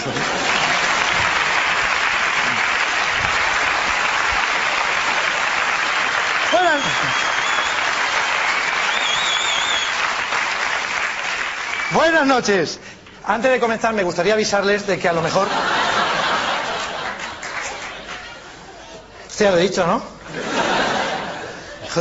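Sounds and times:
laughter: 0.0 - 1.5, 15.2 - 19.1, 20.3 - 21.9
audience applause: 0.0 - 12.3, 15.6 - 18.5
whistle-like tone: 8.9 - 10.0
speech: 11.9 - 15.7, 19.4 - 20.5.

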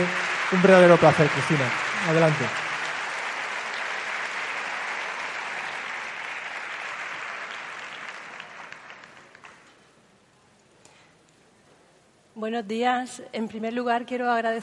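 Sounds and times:
speech: 0.0 - 2.6, 12.4 - 14.6
audience applause: 0.0 - 9.8.

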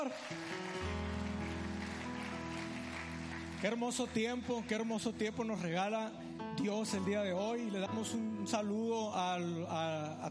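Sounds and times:
speech: 0.0 - 0.6, 3.6 - 10.3
audience applause: 0.0 - 4.9.

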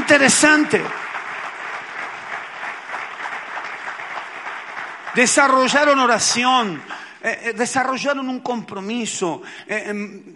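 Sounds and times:
audience applause: 0.0 - 7.1
speech: 0.1 - 1.0, 5.2 - 10.3.

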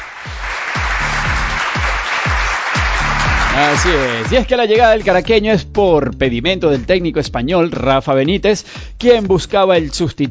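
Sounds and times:
crowd applause sound effect: 0.0 - 4.5
thumping low beat: 0.0 - 10.2
speech: 3.6 - 10.2.

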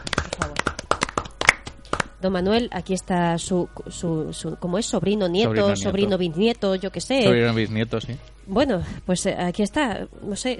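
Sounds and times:
restrained applause: 0.0 - 2.2
speech: 2.2 - 10.5.

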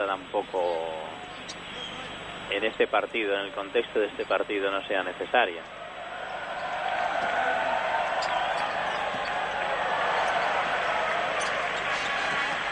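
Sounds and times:
speech: 0.0 - 1.6, 2.5 - 5.8
arena crowd applauding: 5.8 - 12.7.

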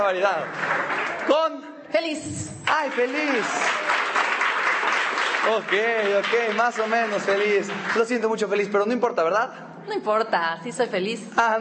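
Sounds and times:
crowd applauding and cheering: 0.0 - 1.4, 2.6 - 8.7
speech: 0.0 - 4.3, 5.4 - 11.5.

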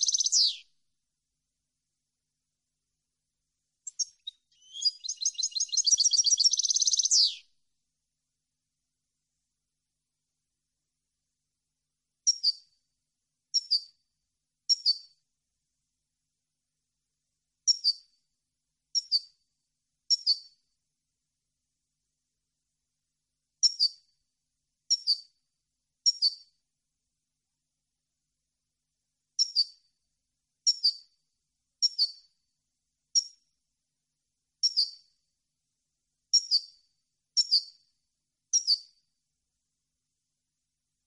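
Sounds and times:
European goldfinch calls: 0.0 - 0.6, 3.9 - 7.4.

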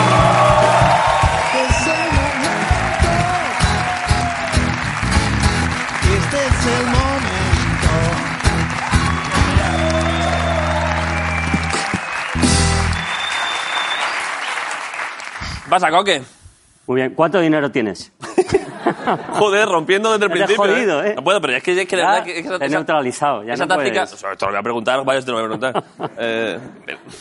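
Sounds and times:
crowd applauding: 0.0 - 15.9
speech: 15.8 - 27.2
laughter: 18.2 - 20.8, 25.4 - 27.2.

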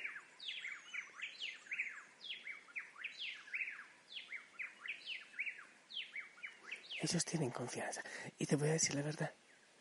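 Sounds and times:
unidentified bird singing: 0.0 - 9.7
speech: 7.0 - 9.4.

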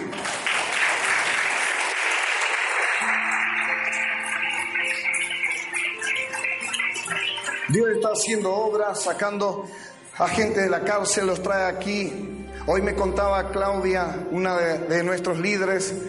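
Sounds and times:
audience clapping: 0.0 - 8.4
speech: 7.7 - 16.0.

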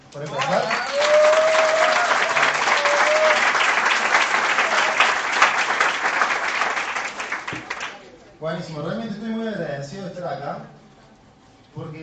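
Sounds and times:
speech: 0.1 - 0.6, 8.5 - 9.2
audience applause: 0.2 - 8.0.

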